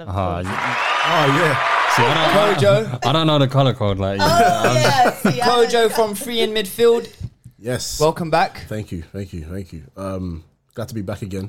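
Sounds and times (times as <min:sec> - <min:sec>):
speech: 0:00.0 - 0:11.4
round of applause: 0:00.4 - 0:02.7
laughter: 0:00.5 - 0:03.2, 0:04.2 - 0:06.7.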